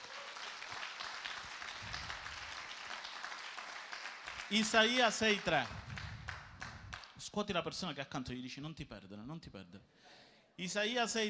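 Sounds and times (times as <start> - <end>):
audience applause: 0.0 - 7.1
speech: 4.5 - 5.8, 7.4 - 11.2.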